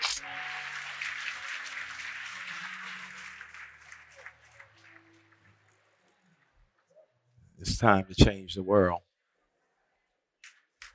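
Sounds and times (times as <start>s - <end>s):
crowd clapping: 0.0s - 5.9s
speech: 7.7s - 9.1s.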